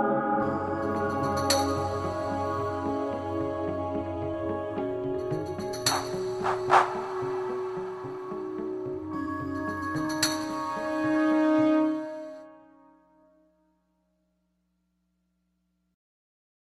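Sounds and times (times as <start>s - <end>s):
criminal background music without words: 0.4s - 12.5s.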